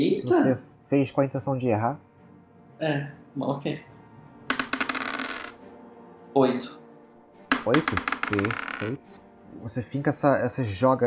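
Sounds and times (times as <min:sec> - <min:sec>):
speech: 0:00.0 - 0:02.1, 0:02.8 - 0:03.9, 0:06.4 - 0:06.8, 0:07.6 - 0:11.0
dice being rolled: 0:04.5 - 0:05.6, 0:07.5 - 0:08.9.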